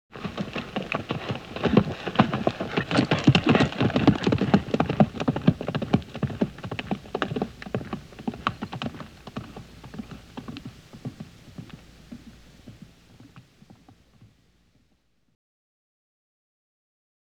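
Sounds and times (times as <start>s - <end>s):
horse galloping hoofbeats: 0.1s - 14.9s.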